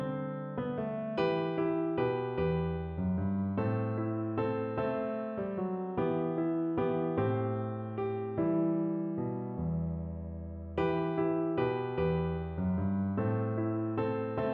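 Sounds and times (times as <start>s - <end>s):
piano piece: 0.0s - 14.5s.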